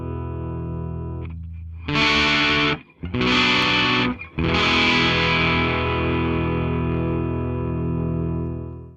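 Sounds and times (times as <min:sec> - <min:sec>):
clean chords: 0:00.0 - 0:08.9.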